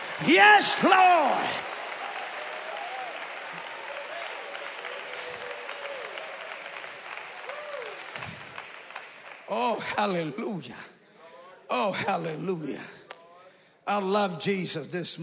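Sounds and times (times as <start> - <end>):
audience clapping hands: 0.0 - 10.7
speech: 0.2 - 1.7, 9.5 - 11.0, 11.7 - 13.0, 13.9 - 15.2.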